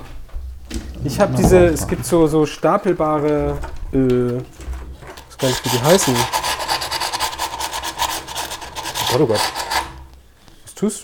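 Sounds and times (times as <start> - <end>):
speech: 1.1 - 4.6, 5.4 - 6.4, 9.1 - 9.6, 10.8 - 11.0
sandpaper rubbed by hand over a rough spot on wood: 5.3 - 10.1.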